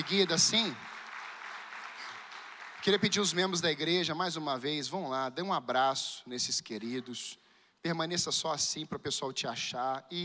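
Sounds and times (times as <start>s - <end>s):
speech: 0.0s - 1.0s, 2.8s - 10.2s
applause: 0.0s - 4.0s.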